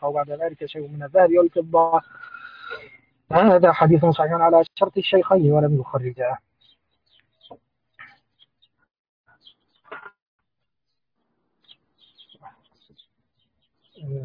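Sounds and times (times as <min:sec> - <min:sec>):
speech: 0:00.0 - 0:06.5, 0:14.0 - 0:14.2
birds chirping in a tree outdoors on a sunny day: 0:00.0 - 0:10.2, 0:11.6 - 0:14.2.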